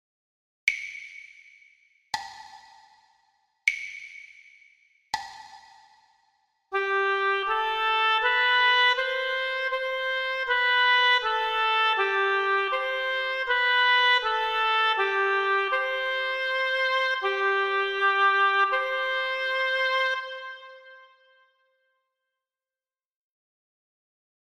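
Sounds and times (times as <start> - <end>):
musical dictation for ear training: 6.8 - 20.4.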